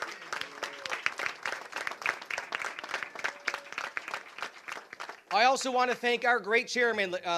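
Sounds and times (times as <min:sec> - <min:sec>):
crowd applause: 0:00.0 - 0:05.8
speech: 0:05.4 - 0:07.3.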